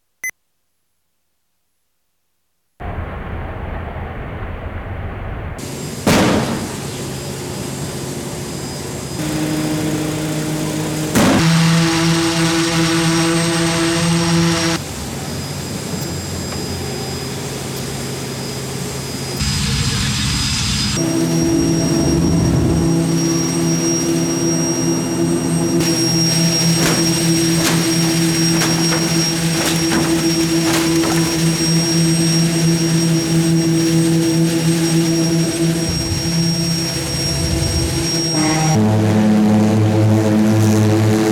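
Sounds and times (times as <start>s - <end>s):
V1 buzz bomb machine running with buzzing drone: 5.6s - 41.2s.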